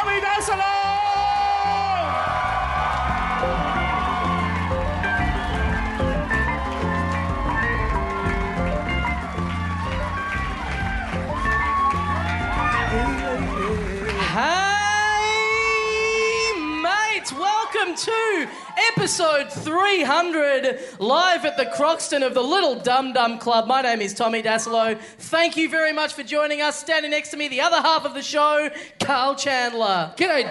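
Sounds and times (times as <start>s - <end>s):
live audience clapping and cheering: 0.0s - 20.0s
speech: 19.2s - 30.5s.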